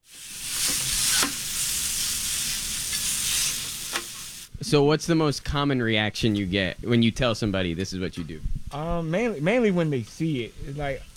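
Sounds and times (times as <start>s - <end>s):
hibachi food sizzling on a hot grill: 0.0s - 4.5s
speech: 4.6s - 11.1s.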